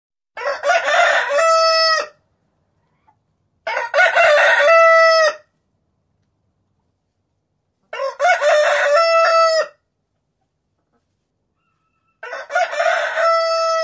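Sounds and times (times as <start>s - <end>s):
rooster crowing: 0.4s - 2.2s, 3.7s - 5.5s, 7.9s - 9.8s, 11.6s - 13.8s.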